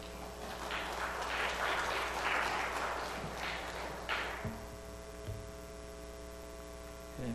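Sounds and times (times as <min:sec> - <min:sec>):
audience applause: 0:00.0 - 0:04.7.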